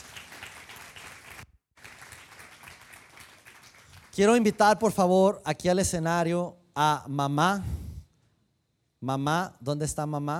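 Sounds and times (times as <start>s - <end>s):
audience applause: 0.0s - 4.2s
speech: 4.2s - 7.8s, 9.0s - 10.3s.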